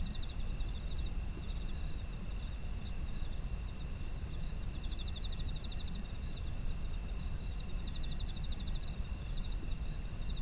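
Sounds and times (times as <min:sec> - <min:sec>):
insects trilling in pulsed chirps: 0:00.0 - 0:10.4.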